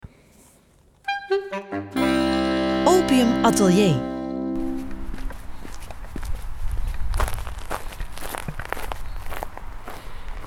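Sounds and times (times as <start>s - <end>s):
speech: 1.3s - 2.2s, 3.1s - 4.1s
footsteps walking along a street: 4.6s - 10.4s.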